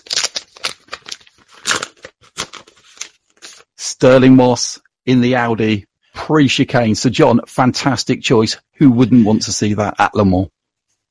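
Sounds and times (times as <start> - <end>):
gold envelope paper tearing: 0.0 - 3.7
speech: 4.0 - 10.6.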